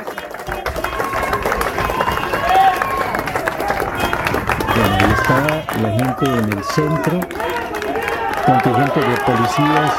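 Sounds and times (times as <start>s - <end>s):
crowd applauding police contingent: 0.0s - 9.9s
speech: 5.3s - 7.5s, 8.5s - 9.9s.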